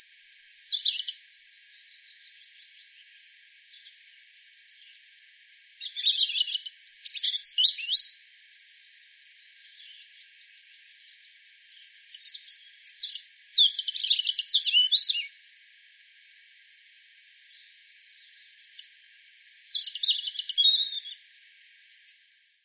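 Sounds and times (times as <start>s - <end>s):
European robin singing: 0.0s - 3.0s, 5.8s - 8.2s, 11.7s - 15.3s, 16.9s - 21.2s.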